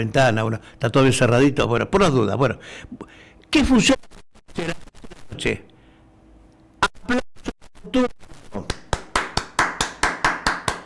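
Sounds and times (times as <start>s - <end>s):
speech: 0.0s - 4.8s, 5.4s - 5.7s, 7.9s - 8.3s
hand clapping: 8.6s - 10.8s.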